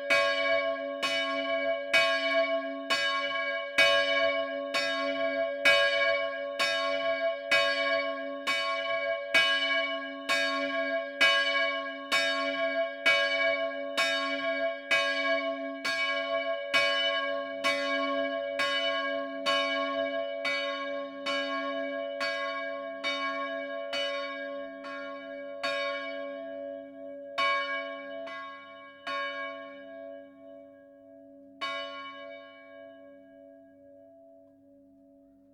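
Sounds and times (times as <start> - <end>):
bell: 0.0 - 35.5.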